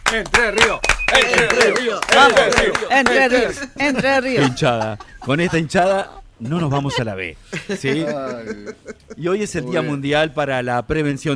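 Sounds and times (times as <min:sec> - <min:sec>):
applause: 0:00.0 - 0:03.2
speech: 0:00.1 - 0:11.3
laughter: 0:01.2 - 0:09.8.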